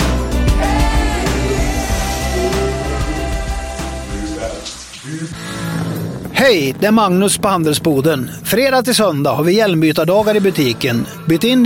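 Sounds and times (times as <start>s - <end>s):
shower running water: 0.6s - 5.4s
speech: 6.4s - 11.6s.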